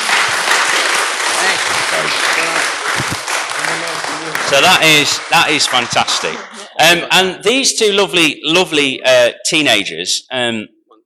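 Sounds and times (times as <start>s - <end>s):
round of applause: 0.0s - 7.0s
speech: 4.5s - 10.8s.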